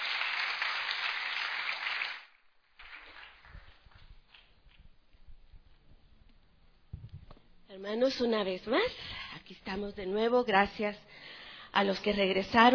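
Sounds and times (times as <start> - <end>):
audience applause: 0.0 - 4.0
speech: 7.8 - 12.7.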